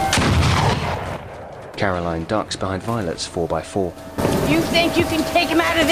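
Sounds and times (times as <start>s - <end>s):
gunshots: 0.1s - 1.6s
speech: 1.8s - 5.9s.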